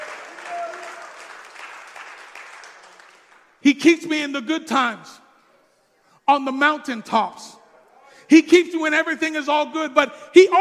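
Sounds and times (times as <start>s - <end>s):
audience clapping: 0.0s - 3.6s
speech: 3.6s - 5.2s, 6.3s - 7.5s, 8.3s - 10.5s.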